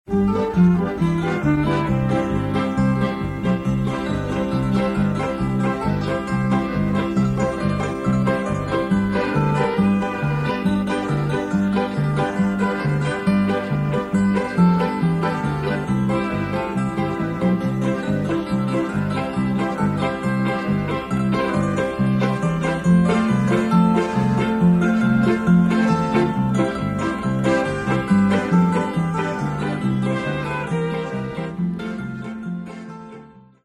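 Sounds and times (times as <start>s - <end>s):
polka music: 0.1s - 33.6s.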